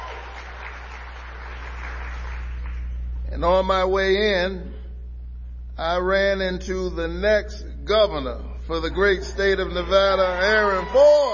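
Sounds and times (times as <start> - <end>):
audience applause: 0.0 - 2.9, 9.3 - 11.3
speech: 3.3 - 4.8, 5.8 - 11.3.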